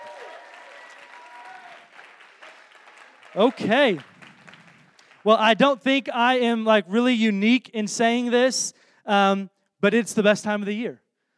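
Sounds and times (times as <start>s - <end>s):
audience clapping: 0.0s - 5.6s
speech: 3.3s - 4.1s, 5.2s - 11.0s.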